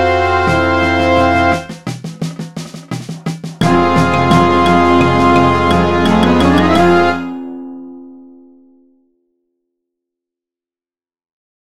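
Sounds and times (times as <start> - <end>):
tribal dance music: 0.0 - 7.3.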